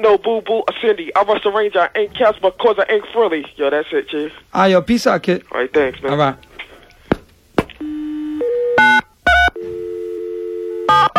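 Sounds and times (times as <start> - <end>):
speech: 0.0 - 6.5
telephone dial tone: 7.8 - 11.1.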